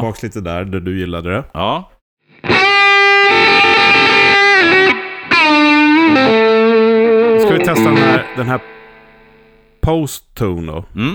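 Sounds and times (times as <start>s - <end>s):
speech: 0.0s - 2.7s, 7.5s - 8.8s, 9.8s - 11.1s
electric guitar through overdrive pedal with drive maxed: 2.3s - 9.7s.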